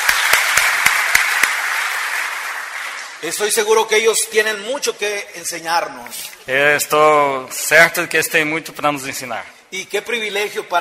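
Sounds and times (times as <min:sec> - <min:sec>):
audience applause: 0:00.0 - 0:03.2
speech: 0:03.2 - 0:10.8.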